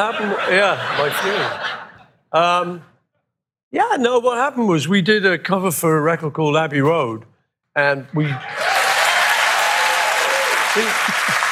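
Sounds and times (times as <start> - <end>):
laughter: 0.0 - 2.7, 10.6 - 11.5
speech: 0.0 - 2.9, 3.7 - 8.7, 10.8 - 11.4
audience applause: 8.5 - 11.5.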